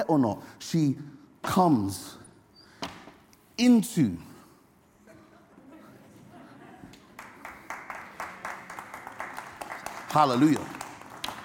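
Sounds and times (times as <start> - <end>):
speech: 0.0 - 2.2, 3.6 - 4.3, 10.1 - 10.8
laughter: 5.0 - 7.2
congregation clapping in church: 7.0 - 11.4.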